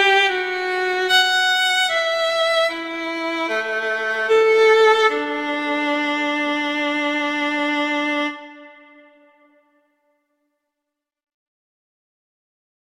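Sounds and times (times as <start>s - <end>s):
violin piece: 0.0s - 9.8s.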